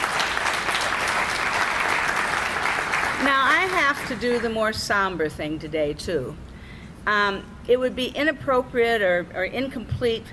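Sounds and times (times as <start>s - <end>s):
audience applause: 0.0s - 4.2s
speech: 4.0s - 10.3s.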